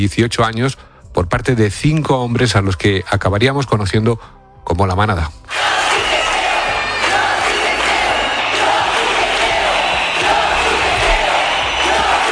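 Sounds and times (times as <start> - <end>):
speech: 0.0 - 5.8
street protest crowd chanting a slogan: 5.5 - 12.3.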